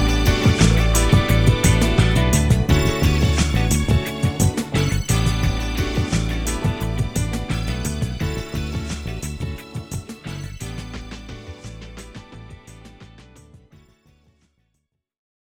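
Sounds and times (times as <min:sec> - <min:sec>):
karaoke singing: 0:00.0 - 0:11.7.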